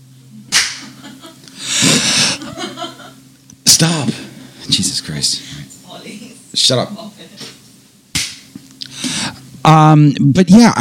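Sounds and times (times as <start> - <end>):
low steady hum: 0.0 - 10.7
hand clap as edit marker: 0.5 - 1.0, 8.1 - 8.5
laughter: 0.8 - 3.2
breathy noisy burst: 1.6 - 2.5
speech: 3.8 - 7.1, 9.7 - 10.7.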